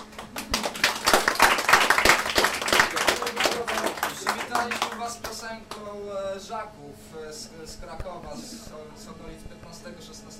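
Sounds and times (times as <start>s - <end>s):
audience applause: 0.0s - 5.1s
speech: 7.0s - 10.3s.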